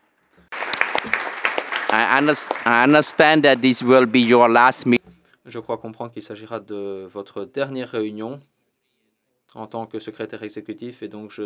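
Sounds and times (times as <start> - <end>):
audience applauding warmly: 0.5 - 5.0
speech: 1.9 - 8.5, 9.5 - 11.4.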